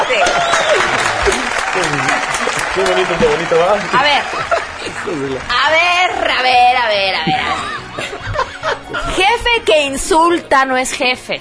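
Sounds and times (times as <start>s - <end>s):
laughter: 0.0s - 5.5s, 7.4s - 9.2s
hand clapping applause: 0.0s - 6.5s
speech: 2.8s - 7.8s, 9.1s - 11.3s.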